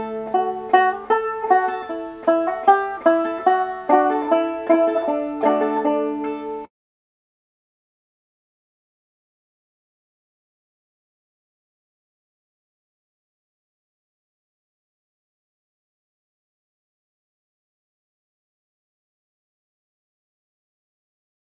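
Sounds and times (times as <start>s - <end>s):
banjo folk tune: 0.0s - 6.7s.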